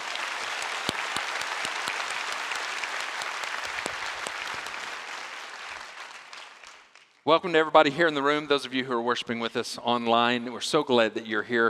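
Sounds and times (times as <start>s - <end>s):
church congregation applauding during a worship service: 0.0s - 7.3s
speech: 7.3s - 11.6s.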